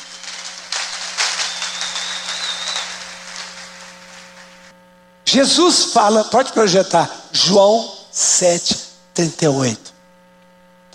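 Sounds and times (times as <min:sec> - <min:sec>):
crowd clapping in a large room: 0:00.0 - 0:04.7
faint hum: 0:00.0 - 0:10.9
speech: 0:05.3 - 0:09.8.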